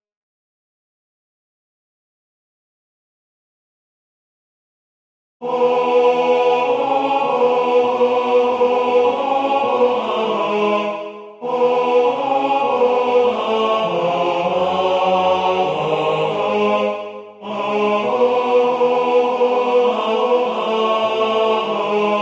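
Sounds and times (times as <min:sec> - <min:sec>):
tenor singing: 0:05.4 - 0:22.2.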